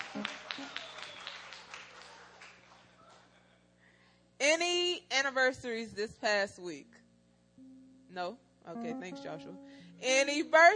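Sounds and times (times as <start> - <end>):
round of applause from a group: 0.0 - 3.5
speech: 5.3 - 7.0, 8.2 - 10.7.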